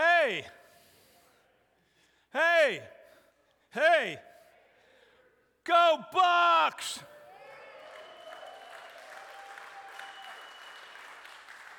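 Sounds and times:
speech: 0.3s - 0.6s, 2.3s - 3.0s, 3.7s - 4.3s, 5.6s - 7.1s
crowd audience applauding: 7.5s - 11.7s.

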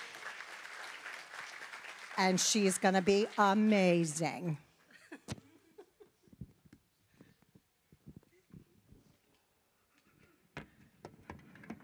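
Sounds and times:
round of applause: 0.0s - 4.2s
speech: 2.2s - 4.6s.

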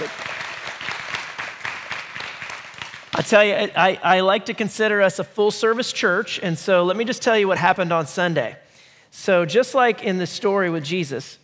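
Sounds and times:
church audience applause: 0.0s - 3.2s
speech: 3.2s - 11.4s.

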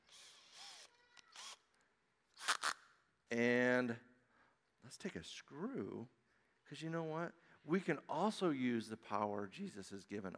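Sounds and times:
bit being swapped out on a power drill: 0.1s - 1.6s
speech: 3.3s - 4.1s, 4.8s - 10.3s.

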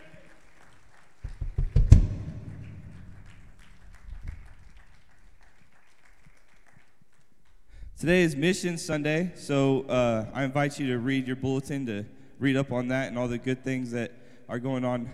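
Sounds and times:
audience applause for visitors: 0.0s - 7.3s
speech: 8.0s - 15.1s.

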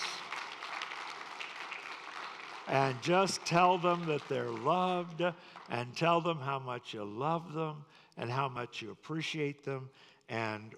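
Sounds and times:
audience clapping: 0.0s - 6.4s
speech: 2.7s - 10.7s.

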